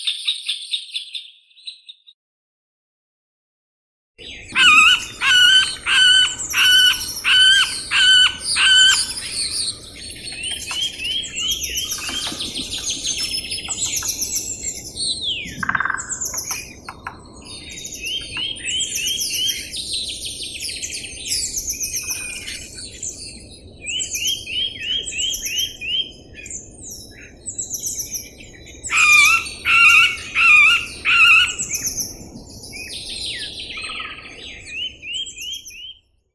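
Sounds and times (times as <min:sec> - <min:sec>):
Dendrocopos medius middle spotted woodpecker: 0:04.5 - 0:14.7, 0:15.3 - 0:19.5, 0:28.9 - 0:31.8.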